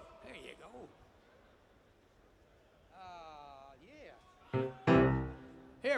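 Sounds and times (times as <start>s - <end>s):
piano piece: 4.5s - 5.8s.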